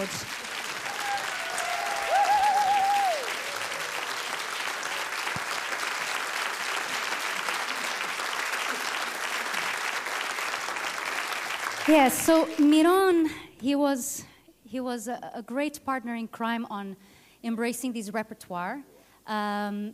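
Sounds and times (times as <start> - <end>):
audience clapping: 0.0 - 12.9
speech: 11.9 - 19.9.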